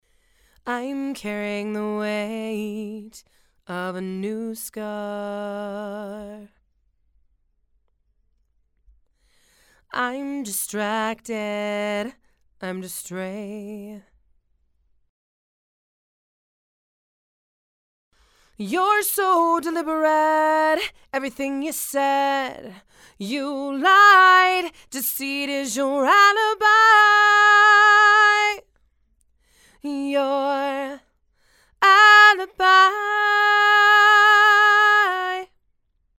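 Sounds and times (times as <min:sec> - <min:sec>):
female vocals: 0:00.6 - 0:06.6, 0:09.9 - 0:14.1, 0:18.6 - 0:28.7, 0:29.7 - 0:31.1, 0:31.7 - 0:35.6.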